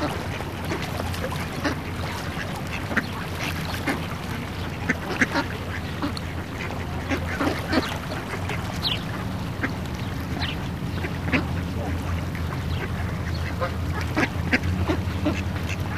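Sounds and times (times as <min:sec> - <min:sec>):
ducks quacking: 0:00.0 - 0:15.9.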